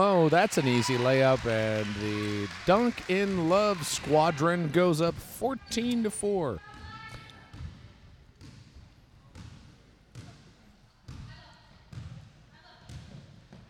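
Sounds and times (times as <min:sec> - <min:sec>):
speech: 0:00.0 - 0:06.7
basketball bouncing: 0:06.6 - 0:13.6.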